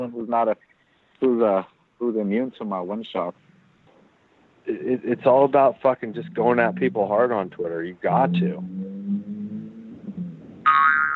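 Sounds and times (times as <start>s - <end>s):
speech: 0.0s - 3.4s, 4.7s - 8.9s
cartoon boing sound effect: 8.2s - 11.1s.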